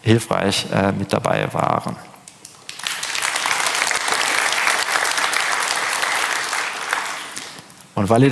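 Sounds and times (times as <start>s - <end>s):
speech: 0.0s - 2.1s, 8.0s - 8.3s
audience applause: 2.6s - 7.7s.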